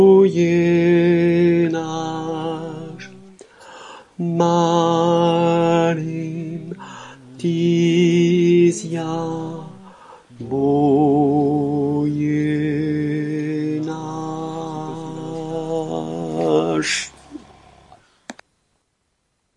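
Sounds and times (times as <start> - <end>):
soprano singing chorale: 0.0 - 18.0.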